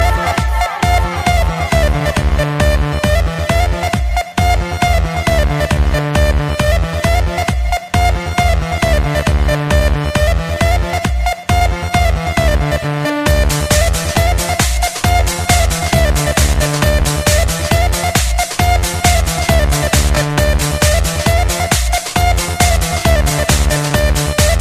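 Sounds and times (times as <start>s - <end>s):
house music: 0.0s - 24.5s.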